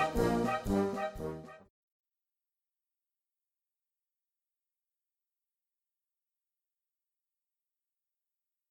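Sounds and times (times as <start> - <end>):
march music: 0.0 - 1.7.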